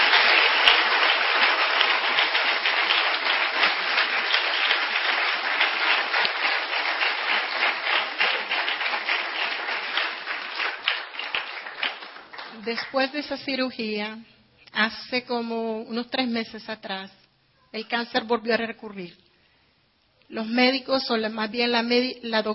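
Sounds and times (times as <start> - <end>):
audience applause: 0.0 - 13.2
speech: 12.7 - 19.2, 20.3 - 22.5.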